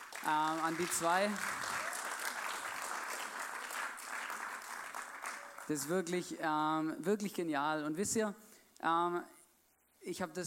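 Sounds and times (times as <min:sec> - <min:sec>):
audience applause: 0:00.0 - 0:05.8
speech: 0:00.2 - 0:01.6, 0:05.7 - 0:09.4, 0:10.0 - 0:10.4.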